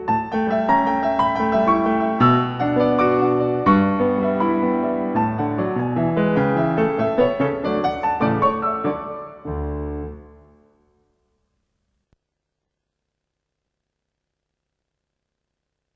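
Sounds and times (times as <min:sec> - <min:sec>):
instrumental waltz: 0:00.0 - 0:10.7.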